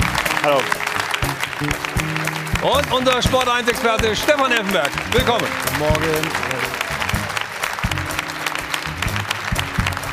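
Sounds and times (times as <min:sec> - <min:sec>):
studio audience applause: 0:00.0 - 0:10.1
speech: 0:00.4 - 0:00.8, 0:01.6 - 0:06.8.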